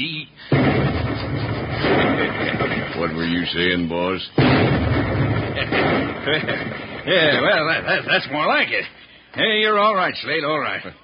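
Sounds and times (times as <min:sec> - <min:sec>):
explosion: 0:00.5 - 0:03.2, 0:04.4 - 0:07.8
laughter: 0:01.8 - 0:03.2, 0:05.5 - 0:08.9
speech: 0:03.0 - 0:11.0.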